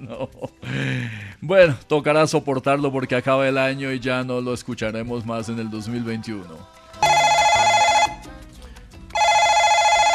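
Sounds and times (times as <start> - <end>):
laughter: 0.0 - 1.2
speech: 0.0 - 6.8
telephone ringing: 7.0 - 8.3, 9.2 - 10.1.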